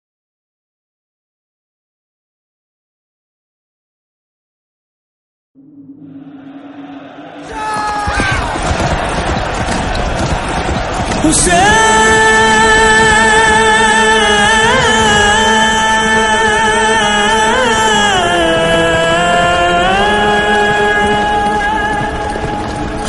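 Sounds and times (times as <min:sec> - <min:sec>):
nohay lament recitation: 0:05.6 - 0:23.0.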